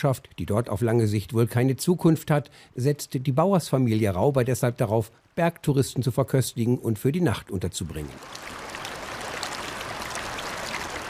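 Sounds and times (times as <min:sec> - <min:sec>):
speech: 0:00.0 - 0:08.6
Kander mountain river rushing through a broad gravel bed in an upper alpine valley: 0:08.1 - 0:11.0.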